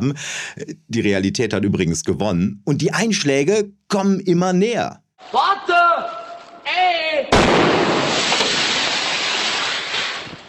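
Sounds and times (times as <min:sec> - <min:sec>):
speech: 0:00.0 - 0:06.0
fireworks rocket whizzing past and bursting: 0:07.4 - 0:10.4.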